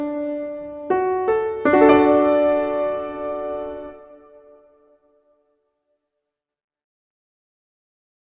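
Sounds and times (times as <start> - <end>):
musical accompaniment: 0.0 - 5.2.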